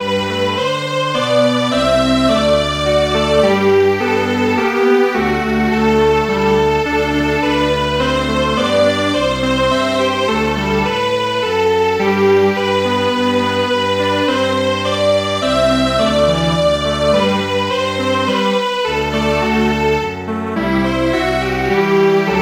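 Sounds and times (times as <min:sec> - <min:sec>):
string quartet playing: 0:00.0 - 0:22.3.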